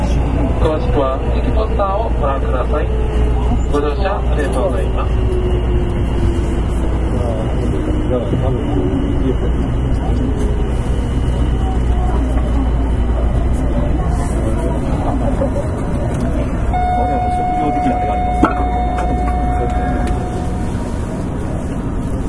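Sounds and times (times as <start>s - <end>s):
Kitakyu 9000 series train rumbling on the Midosuji line: 0.0s - 22.2s
voices: 0.0s - 22.2s
sustained tone: 16.7s - 22.2s.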